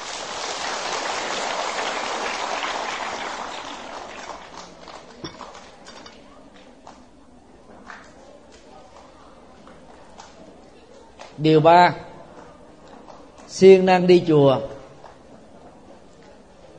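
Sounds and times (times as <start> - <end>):
loud round of applause from a crowd: 0.0 - 6.2
speech: 11.4 - 12.1, 13.6 - 14.8.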